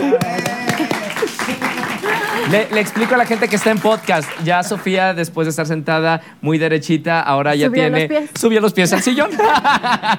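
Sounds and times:
laughter: 0.0s - 3.1s, 8.9s - 10.1s
applause: 0.0s - 5.0s
speech: 2.5s - 10.1s.

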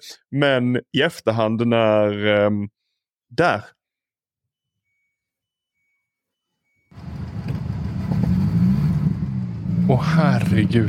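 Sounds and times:
speech: 0.0s - 3.8s, 9.9s - 10.8s
turbocharged car engine revving: 6.9s - 10.8s.

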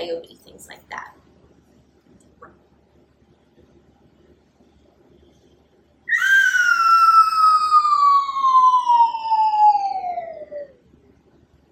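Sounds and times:
speech: 0.0s - 1.1s
cartoon falling-object whistle: 6.1s - 10.8s.

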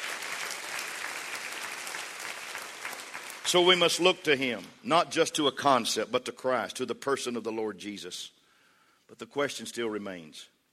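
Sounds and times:
audience clapping hands: 0.0s - 4.3s
speech: 3.5s - 8.4s, 9.1s - 10.5s.

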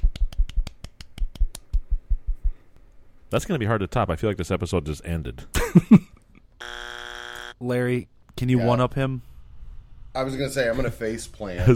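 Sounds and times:
golf clap: 0.0s - 1.9s
speech: 3.3s - 6.2s, 7.6s - 9.3s, 10.1s - 11.7s.

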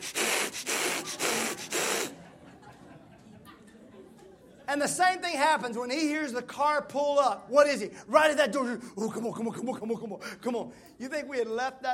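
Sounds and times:
voice imitating a dog's labored breathing: 0.0s - 2.2s
laughter: 0.2s - 4.7s
speech: 4.7s - 11.9s.

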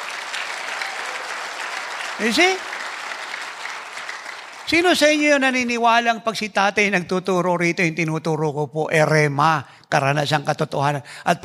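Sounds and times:
audience applause: 0.0s - 5.6s
speech: 2.2s - 2.7s, 4.7s - 11.4s.

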